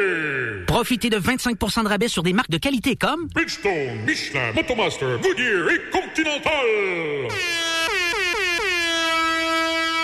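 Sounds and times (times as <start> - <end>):
speech: 0.8 - 7.7
siren horn blast: 7.3 - 10.0.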